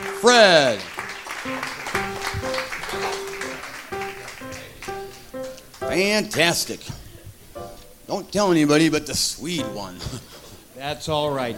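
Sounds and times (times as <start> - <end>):
audience applause for contestants: 0.0 - 6.2
speech: 0.2 - 1.7, 6.0 - 6.9, 8.1 - 11.5.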